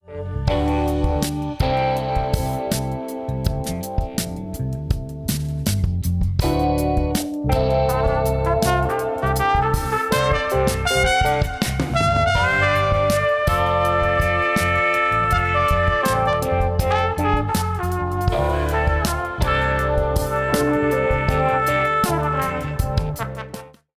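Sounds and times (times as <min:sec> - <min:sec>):
music mix through Chandler Zener Limiter TG12413: 0:00.4 - 0:23.8.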